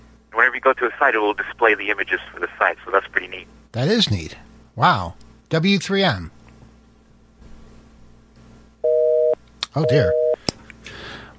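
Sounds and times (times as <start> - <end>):
faint low hum: 0.0 - 11.3
speech: 0.6 - 6.4, 9.8 - 10.2
telephone end-of-call tone like an old busy signal: 8.8 - 10.4.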